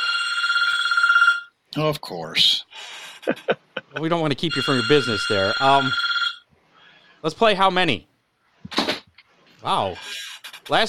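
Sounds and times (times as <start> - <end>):
telephone ringing with high electronic trill: 0.0 - 1.5, 4.4 - 6.5
speech: 1.8 - 6.1, 7.2 - 8.8, 9.6 - 10.8.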